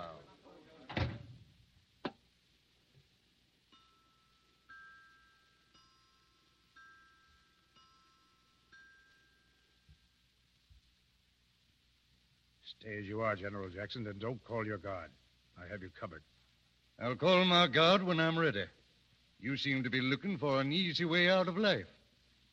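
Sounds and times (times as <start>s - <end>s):
door being shut: 0.9s - 1.4s
speech: 12.7s - 16.3s, 17.0s - 18.8s, 19.4s - 22.0s.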